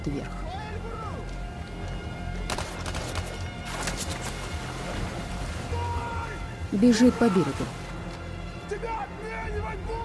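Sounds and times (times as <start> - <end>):
speech: 0.0 - 1.0, 6.7 - 7.8
rushing turbulent river current: 1.1 - 10.0
splashes of a swimmer in the river: 2.7 - 8.4.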